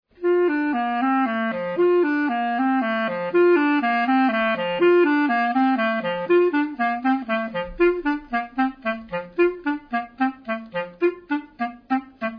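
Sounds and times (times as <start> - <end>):
staccato clarinets: 0.1 - 12.3.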